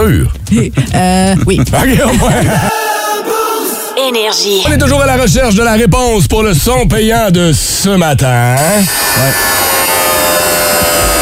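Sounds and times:
speech: 0:00.1 - 0:03.4, 0:04.0 - 0:09.7
laughter: 0:00.8 - 0:03.9
angle grinder running: 0:08.8 - 0:11.2.

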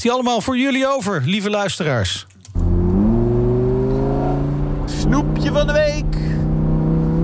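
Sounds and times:
speech: 0:00.0 - 0:02.3, 0:05.1 - 0:06.3
Lamborghini sports car engine revving: 0:02.5 - 0:07.2.

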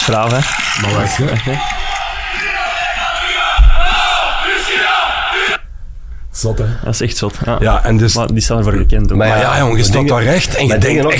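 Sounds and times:
speech: 0:00.0 - 0:01.8, 0:06.4 - 0:11.1
dense wash of stadium crowd clapping: 0:00.0 - 0:04.8
large stadium crowd roaring and cheering: 0:00.0 - 0:05.6.

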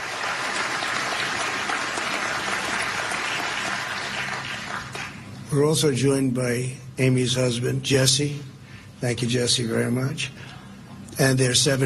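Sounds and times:
audience applause: 0:00.0 - 0:05.2
speech: 0:05.5 - 0:10.5, 0:11.2 - 0:11.8.

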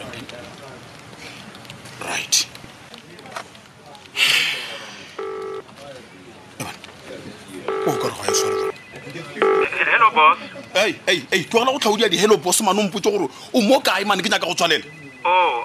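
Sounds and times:
telephone keypad tone beeps: 0:05.2 - 0:05.6, 0:07.6 - 0:11.0, 0:14.3 - 0:15.6
electronic chirps: 0:07.7 - 0:11.0, 0:14.5 - 0:15.6
speech: 0:10.8 - 0:15.6.

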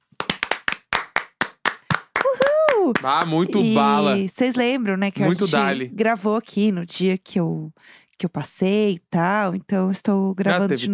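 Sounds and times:
hand clapping: 0:00.0 - 0:04.0
speech: 0:02.3 - 0:10.9.

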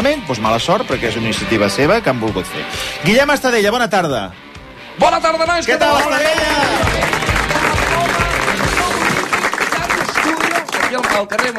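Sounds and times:
speech: 0:00.0 - 0:04.4, 0:05.0 - 0:07.1, 0:11.0 - 0:11.5
enthusiastic studio audience applauding: 0:05.6 - 0:11.5.

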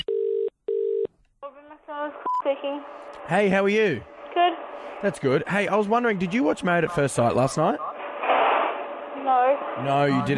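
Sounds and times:
telephone ringing tones: 0:00.0 - 0:01.1
speech: 0:01.9 - 0:07.9, 0:09.4 - 0:10.3.

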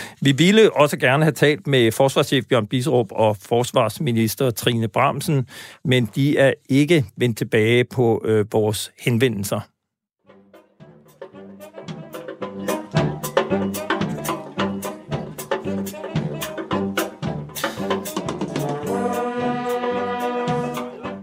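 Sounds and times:
speech: 0:00.2 - 0:09.7
home guard brass band music recording: 0:10.9 - 0:21.2.

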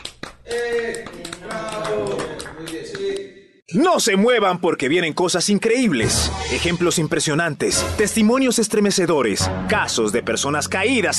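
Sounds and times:
clapping: 0:00.0 - 0:03.3
speech: 0:00.5 - 0:11.1.

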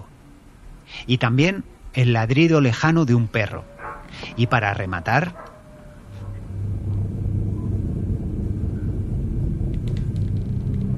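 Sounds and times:
speech: 0:01.0 - 0:03.7, 0:04.3 - 0:05.5
low droning rumble: 0:03.6 - 0:10.9.

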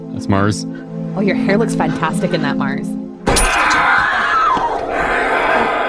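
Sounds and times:
speech: 0:00.3 - 0:03.0
sustained scream from a film scene: 0:03.4 - 0:05.8.

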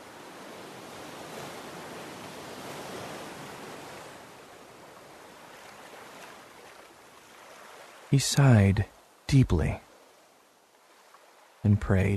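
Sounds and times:
ocean waves lapping: 0:00.0 - 0:12.1
speech: 0:08.1 - 0:09.8, 0:11.6 - 0:12.1.

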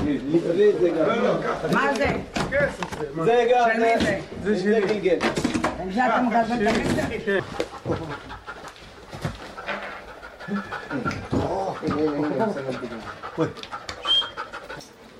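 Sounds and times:
speech: 0:00.1 - 0:08.4, 0:10.5 - 0:13.9
tracking dog panting and snuffling: 0:06.2 - 0:15.1
chirping and clucking-like noises: 0:07.4 - 0:14.9.

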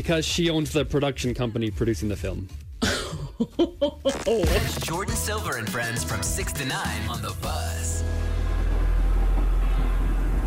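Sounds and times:
speech: 0:00.0 - 0:02.6, 0:03.4 - 0:08.0
thunder rumbling in a song: 0:08.2 - 0:10.4.

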